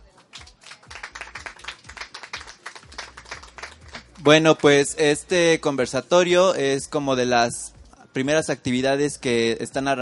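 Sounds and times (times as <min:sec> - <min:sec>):
audience applause: 0:00.3 - 0:04.1
speech: 0:04.2 - 0:10.0.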